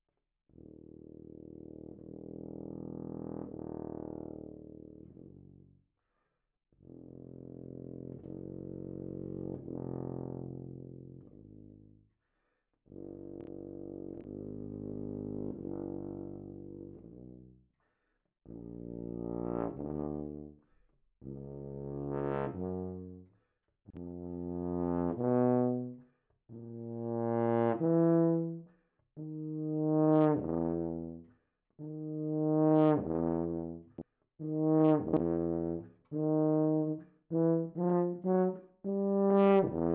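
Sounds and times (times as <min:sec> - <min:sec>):
tuba: 0:00.5 - 0:05.8, 0:06.8 - 0:17.7, 0:18.5 - 0:39.9.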